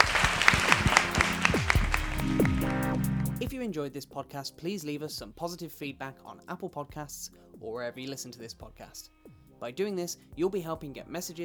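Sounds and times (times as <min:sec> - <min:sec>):
audience round of applause: 0:00.0 - 0:02.9
speech: 0:03.6 - 0:11.4.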